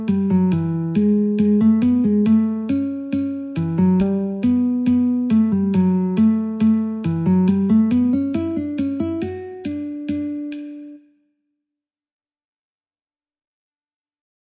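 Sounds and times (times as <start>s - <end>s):
metronome at 69: 0.0s - 11.0s
guitar: 0.0s - 11.1s.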